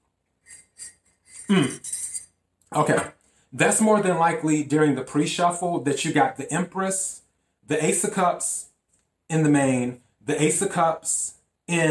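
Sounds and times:
taking a sip from a glass: 0.5s - 3.0s
speech: 1.5s - 1.9s, 2.7s - 8.7s, 9.3s - 11.9s.

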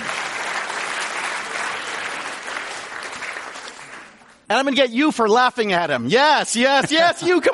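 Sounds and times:
audience applause: 0.0s - 4.4s
speech: 4.5s - 7.5s.

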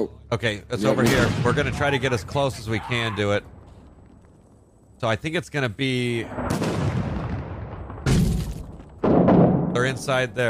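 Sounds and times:
speech: 0.0s - 3.6s, 5.0s - 6.7s, 9.8s - 10.4s
mortar fire in the combat video game Six Days in Fallujah: 6.3s - 10.2s.

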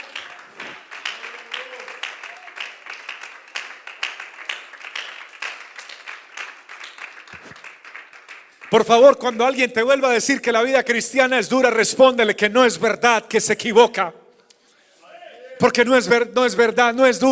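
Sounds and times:
audience applause: 0.0s - 8.8s
speech: 8.7s - 14.2s, 15.6s - 17.2s.

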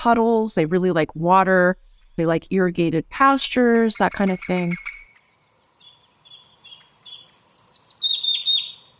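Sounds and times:
speech: 0.0s - 5.0s
grackle calls: 4.0s - 8.9s.

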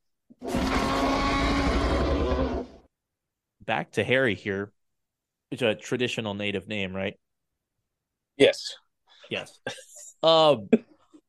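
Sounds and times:
T-Rex roar sound effect: 0.4s - 2.9s
speech: 3.7s - 4.8s, 5.5s - 7.2s, 8.4s - 10.9s.

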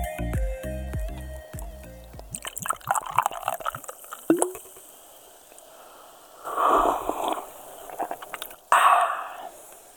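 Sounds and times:
sips and gulps of Fanta drunk from a glass: 2.0s - 5.0s, 6.5s - 9.9s.

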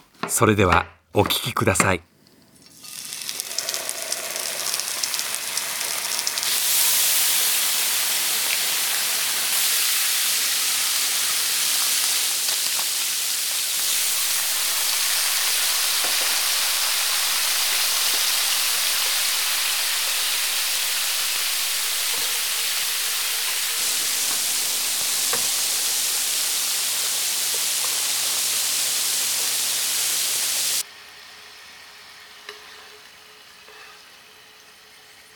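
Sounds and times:
speech: 0.3s - 2.1s
ginger pork sizzling while frying: 2.5s - 35.3s.

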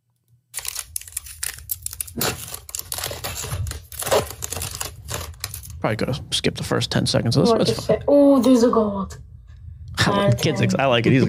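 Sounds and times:
child ripping open a foil pack of 2020 Bowman Chrome baseball cards: 0.5s - 5.7s
speech: 5.8s - 9.3s, 10.1s - 11.2s.

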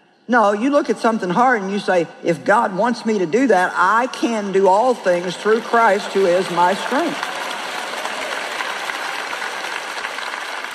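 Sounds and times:
speech: 0.3s - 7.3s
audience clapping: 4.9s - 10.7s.

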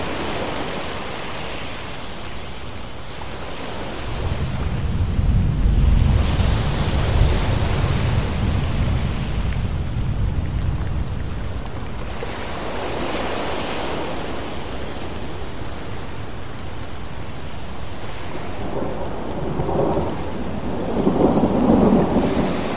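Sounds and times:
ocean waves washing in: 0.0s - 22.7s
rain pattering on surfaces: 0.0s - 22.7s
thunder rumbling: 3.9s - 13.3s, 18.3s - 22.7s.

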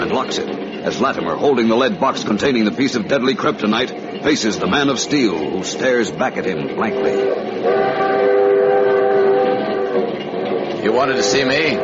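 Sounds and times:
speech: 0.0s - 8.1s, 10.8s - 11.8s
passenger train rumbling on rails: 0.0s - 11.8s
sustained horn-like tones: 6.8s - 11.8s.

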